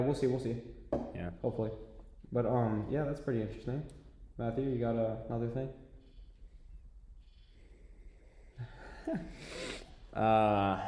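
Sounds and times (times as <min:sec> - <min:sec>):
speech: 0:00.0 - 0:05.8, 0:08.6 - 0:10.8
sniffing into the microphone: 0:09.3 - 0:10.1.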